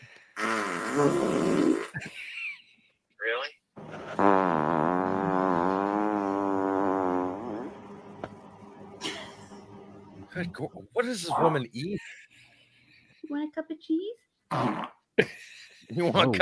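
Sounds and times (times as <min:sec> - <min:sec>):
long loud buzzy fart: 0:00.4 - 0:02.0, 0:03.8 - 0:10.2, 0:14.5 - 0:15.1
speech: 0:01.0 - 0:02.3, 0:10.5 - 0:12.2, 0:13.6 - 0:14.8, 0:16.0 - 0:16.4.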